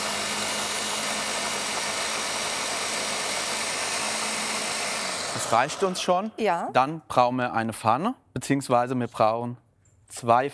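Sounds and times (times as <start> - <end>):
blender mixing at full power: 0.0 - 6.6
speech: 5.4 - 10.5.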